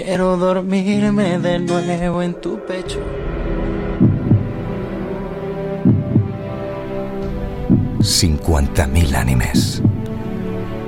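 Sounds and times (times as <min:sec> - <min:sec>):
speech: 0:00.0 - 0:03.4, 0:08.0 - 0:09.9
heartbeat: 0:02.8 - 0:08.2, 0:09.5 - 0:10.2.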